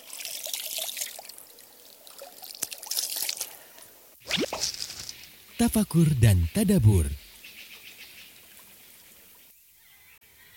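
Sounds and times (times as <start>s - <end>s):
clear water being poured for drinking: 0.0s - 3.6s, 4.3s - 5.1s
speech: 5.6s - 7.2s.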